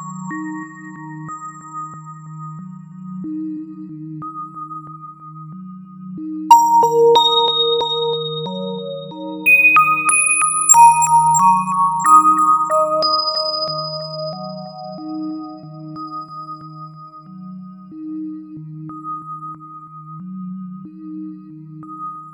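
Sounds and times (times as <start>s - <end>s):
step melody: 6.5s - 8.7s, 9.5s - 14.2s.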